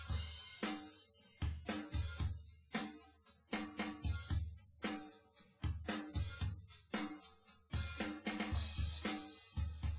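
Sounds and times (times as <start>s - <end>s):
drums: 0.0s - 9.9s.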